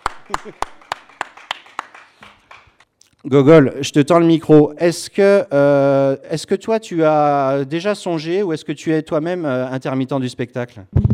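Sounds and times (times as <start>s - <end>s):
sparse audience applause: 0.0s - 2.8s
speech: 0.3s - 0.8s, 3.2s - 11.0s.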